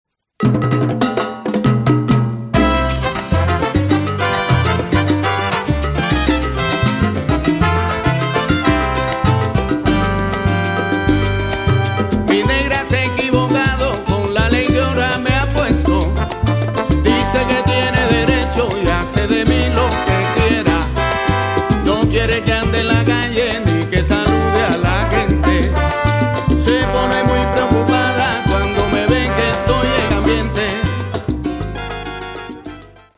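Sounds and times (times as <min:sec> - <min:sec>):
salsa music: 0:00.4 - 0:33.1.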